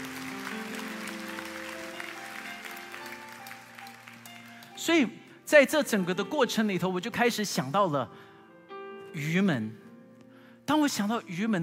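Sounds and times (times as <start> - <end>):
audience applause: 0.0 - 4.8
speech: 4.8 - 8.3, 9.2 - 9.8, 10.7 - 11.6.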